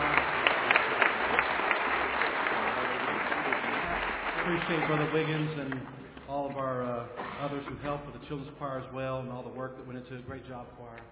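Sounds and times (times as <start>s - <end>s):
audience applauding the children's choir: 0.0s - 6.0s
speech: 4.5s - 11.1s.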